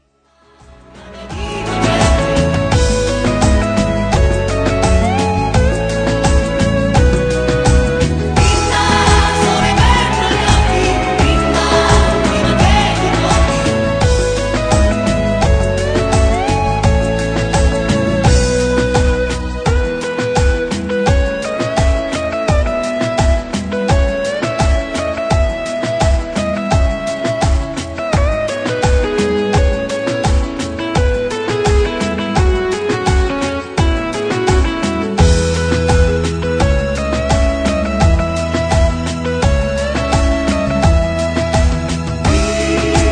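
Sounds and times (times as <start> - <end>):
cumbia music: 0.5 - 43.0.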